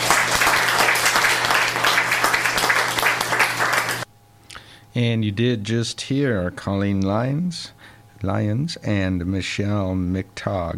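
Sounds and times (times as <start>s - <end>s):
audience applause: 0.0s - 4.1s
speech: 5.0s - 10.7s.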